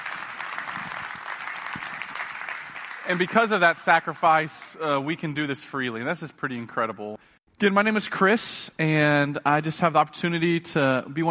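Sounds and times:
audience clapping: 0.0 - 5.1
speech: 3.1 - 11.2.

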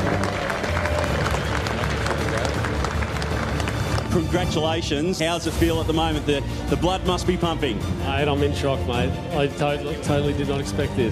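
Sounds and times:
crowd applause and cheering for the Summernats 33 Grand Champion: 0.0 - 5.8
speech: 4.2 - 11.1.

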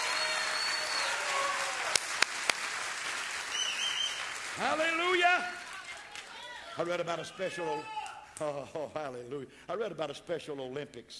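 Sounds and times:
audience cheering and applause: 0.0 - 6.8
speech: 4.6 - 5.6, 6.8 - 11.1.

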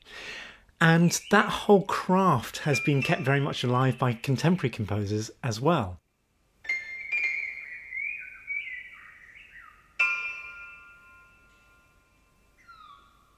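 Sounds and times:
speech: 0.8 - 6.0
bird-like whistles and chirps in a contemporary concerto: 2.6 - 4.0, 6.7 - 10.6, 12.6 - 13.3.

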